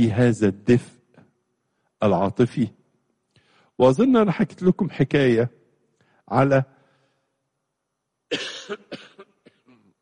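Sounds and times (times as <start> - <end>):
speech: 0.0 - 1.0, 2.0 - 2.8, 3.8 - 5.6, 6.3 - 6.7, 8.3 - 9.1
man with a slight cold coughing: 8.3 - 9.9.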